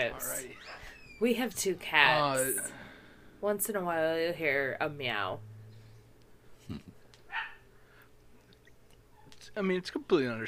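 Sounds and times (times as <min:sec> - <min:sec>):
speech: 0:00.0 - 0:00.6, 0:01.2 - 0:02.8, 0:03.4 - 0:05.5, 0:06.7 - 0:06.9, 0:09.6 - 0:10.4
low steady hum: 0:00.0 - 0:10.4
dog barking: 0:07.3 - 0:07.6.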